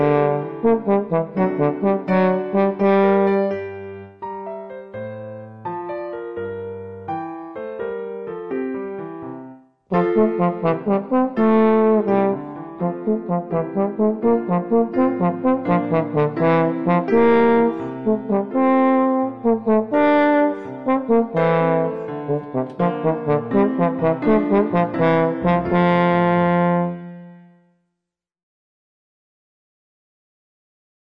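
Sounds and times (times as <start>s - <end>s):
trombone playing: 0.0s - 3.6s, 9.9s - 27.5s
accompaniment music: 0.0s - 27.6s.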